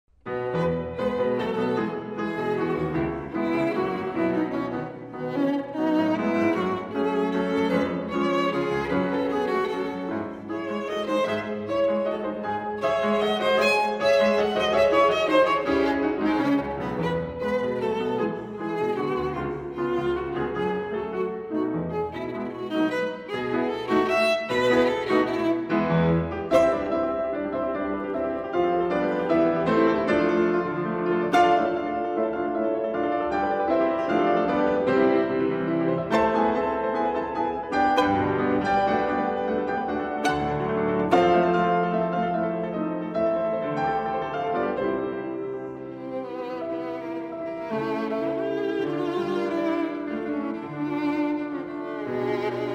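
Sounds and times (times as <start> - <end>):
violin sonata: 0.2 - 52.7.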